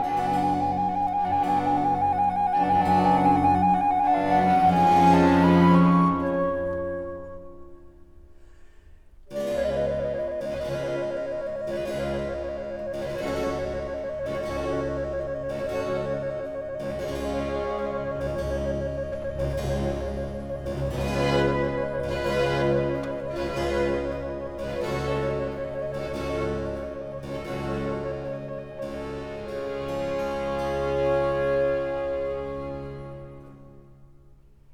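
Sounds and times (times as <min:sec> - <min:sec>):
slow flute and string concerto movement in G minor: 0:00.0 - 0:08.2, 0:09.3 - 0:34.5.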